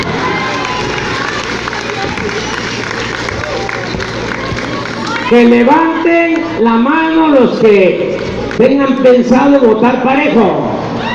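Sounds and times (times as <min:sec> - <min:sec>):
audience applause: 0:00.0 - 0:06.0
speech: 0:05.3 - 0:10.8.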